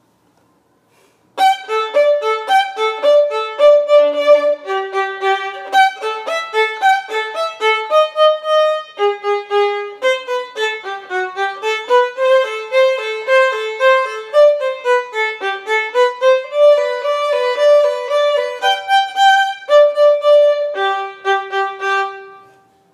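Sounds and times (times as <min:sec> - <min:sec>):
violin: 0:01.4 - 0:22.7.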